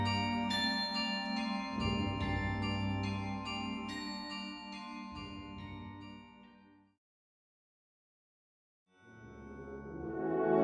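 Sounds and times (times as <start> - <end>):
bell: 0.0 - 7.0.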